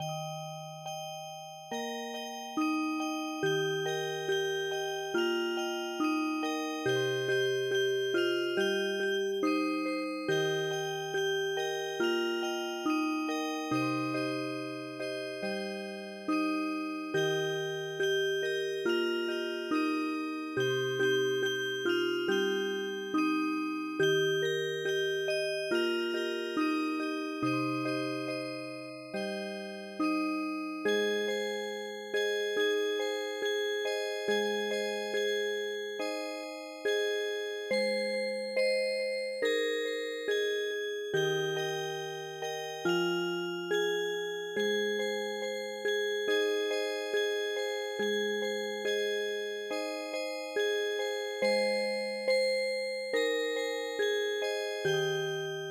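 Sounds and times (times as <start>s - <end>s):
music box: 0.0s - 55.6s.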